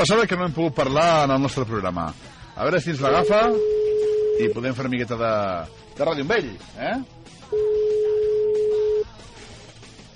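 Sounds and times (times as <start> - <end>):
speech: 0.0 - 7.8
telephone line ringing unanswered: 3.0 - 4.6, 7.5 - 9.1.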